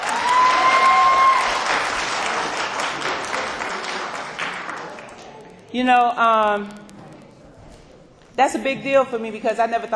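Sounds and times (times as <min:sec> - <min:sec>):
audience clapping: 0:00.0 - 0:05.7
speech: 0:05.7 - 0:06.9, 0:08.4 - 0:09.9.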